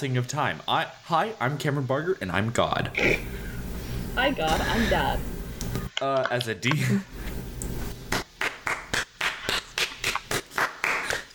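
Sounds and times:
speech: 0.0s - 3.5s, 4.2s - 5.3s, 6.0s - 7.2s
small group clapping: 8.0s - 11.3s.

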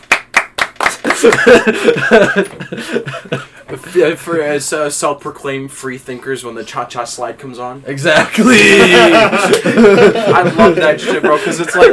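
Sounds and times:
hand clapping: 0.0s - 2.6s, 9.3s - 10.0s
laughter: 1.0s - 3.6s, 8.1s - 11.9s
speech: 1.2s - 11.9s.

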